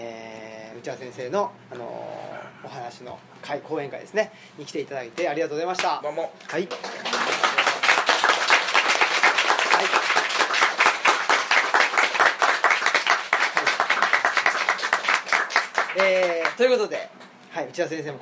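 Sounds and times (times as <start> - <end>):
speech: 0.8 - 7.1, 16.0 - 18.1
audience applause: 6.7 - 16.6.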